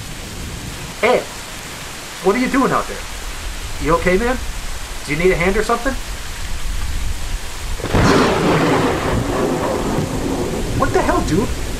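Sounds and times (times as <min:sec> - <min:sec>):
heavy rain pouring: 0:00.0 - 0:11.7
speech: 0:01.0 - 0:01.4, 0:02.2 - 0:03.2, 0:03.8 - 0:06.1, 0:11.3 - 0:11.7
thunder: 0:07.8 - 0:11.7.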